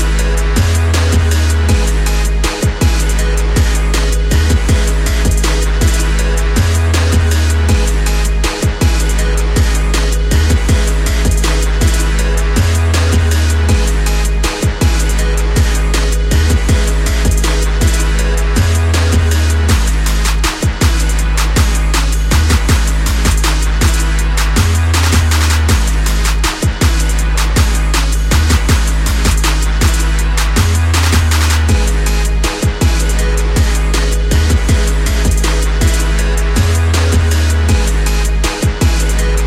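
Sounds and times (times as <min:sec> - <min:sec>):
hip hop instrumental: 0:00.0 - 0:39.4.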